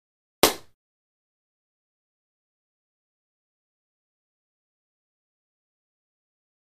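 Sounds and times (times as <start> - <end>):
badminton battledore hitting shuttlecock: 0.4 - 0.7.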